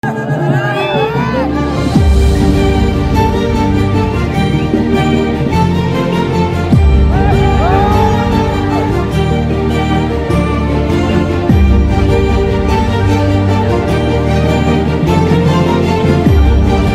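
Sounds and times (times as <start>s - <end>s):
Tamil love music: 0.0s - 16.9s.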